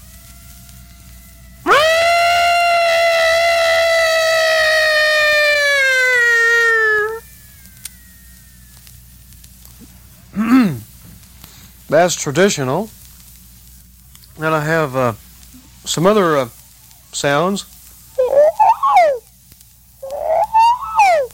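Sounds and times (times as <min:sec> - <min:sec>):
person imitating elephant trumpeting: 0:01.6 - 0:07.2, 0:18.2 - 0:19.3, 0:20.0 - 0:21.3
speech: 0:11.9 - 0:13.0, 0:14.4 - 0:15.2, 0:15.9 - 0:17.8.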